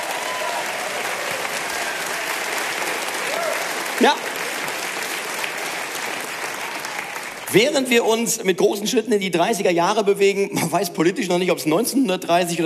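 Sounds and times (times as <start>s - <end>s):
audience applause: 0.0s - 8.1s
speech: 4.0s - 4.3s, 7.5s - 12.6s.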